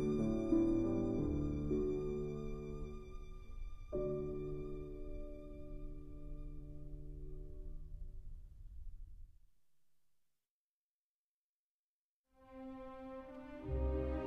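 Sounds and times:
violin: 0:00.0 - 0:07.5, 0:12.4 - 0:14.2
piano: 0:00.0 - 0:09.2, 0:12.4 - 0:14.2.

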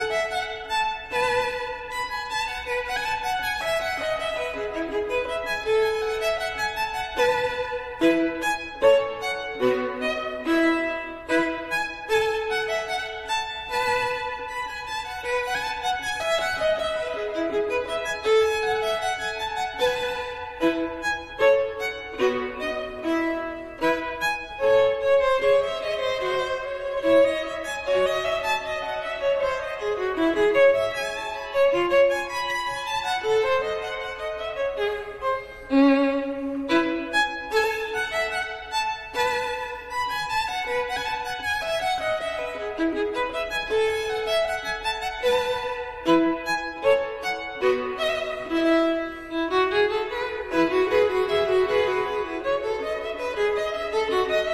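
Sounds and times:
violin: 0:00.0 - 0:54.5.

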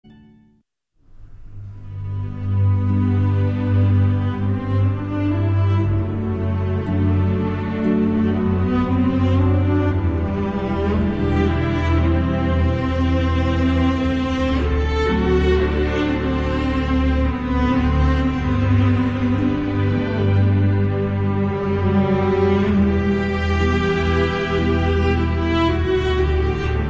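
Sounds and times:
symphony orchestra arioso for strings: 0:01.3 - 0:26.8.

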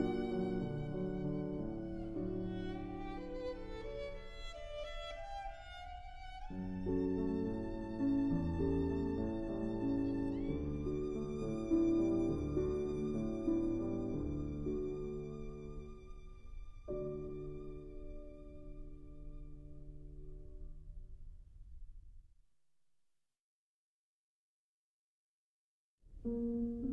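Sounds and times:
violin: 0:00.0 - 0:20.5
piano: 0:00.0 - 0:22.2, 0:26.1 - 0:26.9.

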